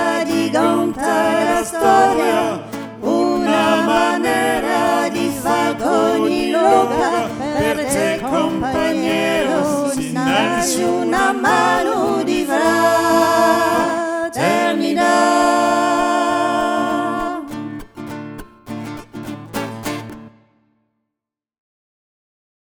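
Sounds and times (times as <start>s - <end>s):
three-voice singing: 0.0s - 17.9s.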